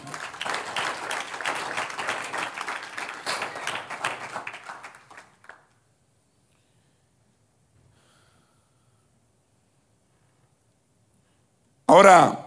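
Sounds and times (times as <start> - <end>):
audience applause: 0.0 - 5.7
speech: 11.9 - 12.4.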